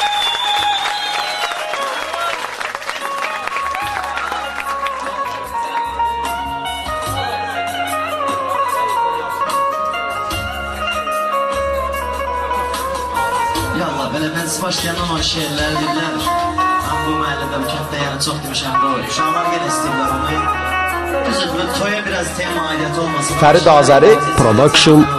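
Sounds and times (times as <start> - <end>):
applause at a poetry recital performance: 0.0 - 6.0
music with low bass notes and ringing tonal lines: 3.6 - 25.1
speech: 14.6 - 25.1.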